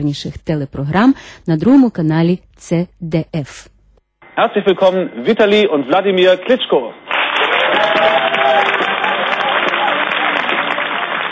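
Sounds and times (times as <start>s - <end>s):
speech: 0.0s - 3.7s, 4.4s - 7.1s
loud applause and cheering from studio audience: 7.0s - 11.2s.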